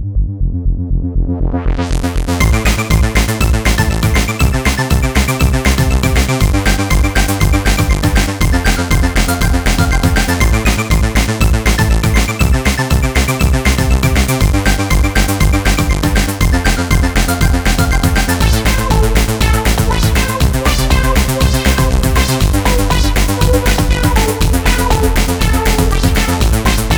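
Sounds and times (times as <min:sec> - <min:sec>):
electro punk music: 0:00.2 - 0:26.9.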